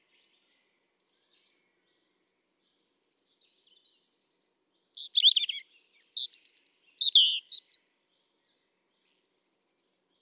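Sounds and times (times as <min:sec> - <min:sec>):
European robin singing: 0:04.6 - 0:07.8.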